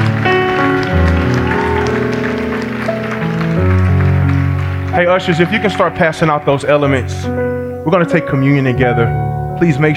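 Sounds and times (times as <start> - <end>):
audience applause: 0.0 - 6.0
speech: 5.0 - 9.9.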